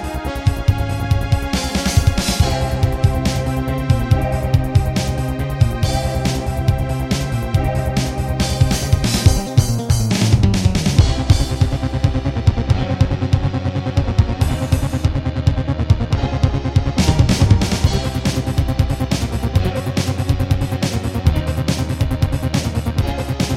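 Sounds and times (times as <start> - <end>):
Casio CTK-2100 electronic keyboard: 0.0 - 23.5.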